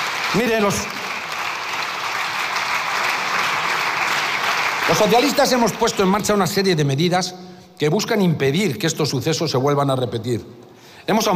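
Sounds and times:
applause for Spanish politician Pablo Casado: 0.0s - 6.7s
speech: 0.3s - 1.0s, 4.9s - 11.3s.

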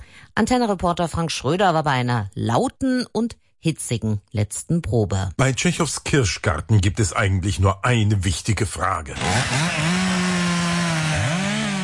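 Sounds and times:
speech: 0.4s - 10.1s
chainsaw running: 9.2s - 11.8s.

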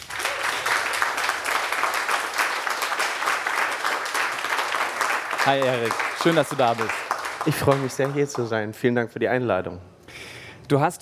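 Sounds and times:
crowd applause: 0.0s - 8.6s
speech: 5.5s - 11.0s.

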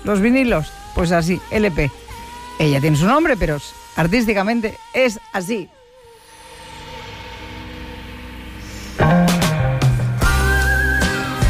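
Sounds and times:
speech: 0.0s - 2.0s, 2.6s - 5.8s
whistled melody in a pop song: 9.0s - 11.4s.

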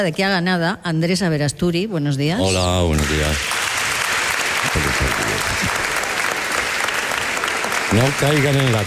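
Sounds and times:
speech: 0.0s - 3.6s, 4.7s - 5.8s, 7.9s - 8.8s
audience applause: 2.6s - 8.8s.

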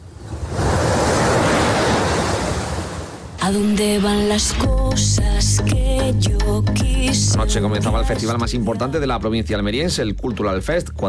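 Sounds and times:
sea waves breaking on a beach: 0.0s - 3.4s
speech: 3.5s - 11.0s.

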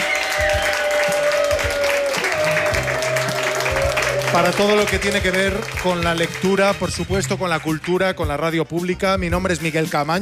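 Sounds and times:
audience applause at a book fair: 0.0s - 7.8s
speech: 4.3s - 10.2s.

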